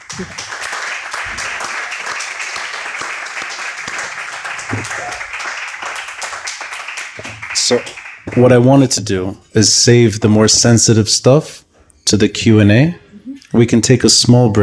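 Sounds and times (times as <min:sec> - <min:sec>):
audience applause: 0:00.0 - 0:08.7
speech: 0:00.1 - 0:00.6, 0:04.7 - 0:05.3, 0:07.2 - 0:13.0, 0:13.6 - 0:14.6.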